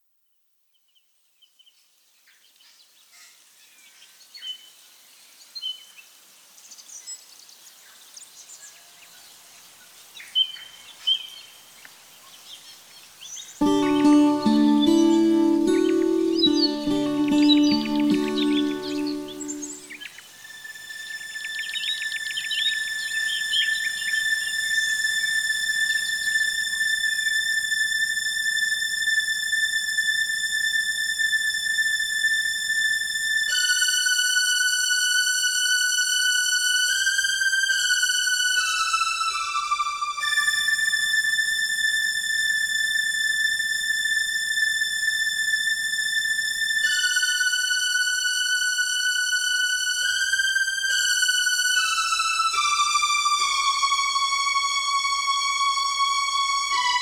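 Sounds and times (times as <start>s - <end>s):
strings: 13.6s - 56.9s.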